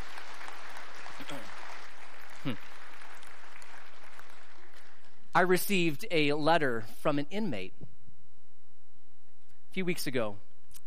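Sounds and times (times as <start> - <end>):
crowd applauding: 0.0 - 5.2
speech: 2.4 - 2.7, 5.4 - 7.9, 9.8 - 10.8.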